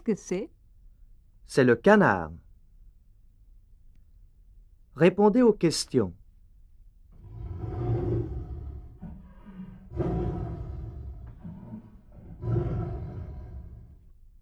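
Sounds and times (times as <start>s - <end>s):
speech: 0.1s - 0.6s, 1.5s - 2.4s, 5.0s - 6.2s
tiger roaring and growling: 7.2s - 14.1s.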